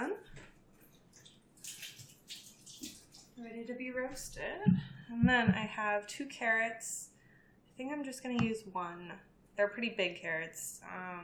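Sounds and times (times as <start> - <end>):
running tap water rinsing cherry tomatoes: 0.4 - 3.4
speech: 3.6 - 7.1, 7.8 - 11.2.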